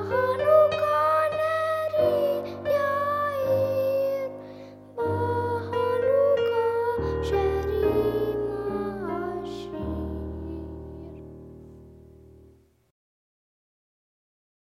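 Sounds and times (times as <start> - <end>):
solo singing: 0.0 - 4.4, 5.0 - 11.4
piano accompaniment: 0.0 - 12.7.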